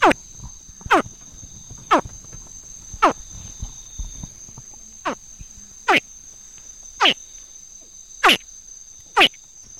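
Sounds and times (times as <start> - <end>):
thin high-pitched insect drone: 0.0 - 9.7
juvenile crocodile contact call chirps: 7.0 - 7.2, 8.2 - 8.4, 9.2 - 9.4.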